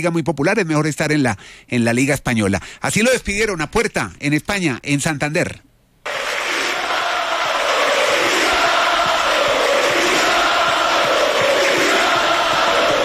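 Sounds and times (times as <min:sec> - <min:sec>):
speech: 0:00.0 - 0:05.7
stadium fans applauding and cheering: 0:06.1 - 0:13.0.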